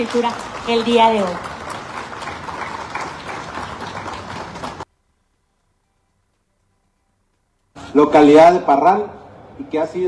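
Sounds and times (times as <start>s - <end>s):
speech: 0.0s - 1.5s, 8.0s - 10.0s
audience applause: 0.0s - 4.9s.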